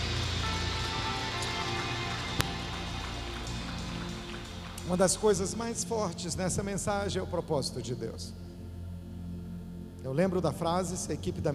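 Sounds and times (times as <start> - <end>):
audience applause: 0.0 - 5.7
speech: 4.9 - 8.4, 10.0 - 11.5.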